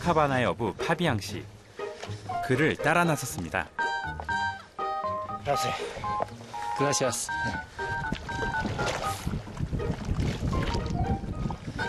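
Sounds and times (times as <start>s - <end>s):
speech: 0.0s - 4.3s, 5.4s - 7.8s
oars rowing a small boat on a lake at Copacabana: 0.9s - 11.8s
wind noise on a lake at Copacabana: 7.4s - 11.8s.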